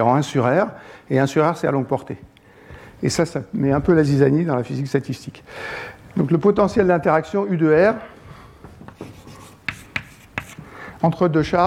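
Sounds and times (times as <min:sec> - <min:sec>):
speech: 0:00.0 - 0:02.3, 0:03.0 - 0:08.1, 0:11.0 - 0:11.6
hand-written strokes of an equation for the Coulomb interaction potential: 0:08.9 - 0:10.8.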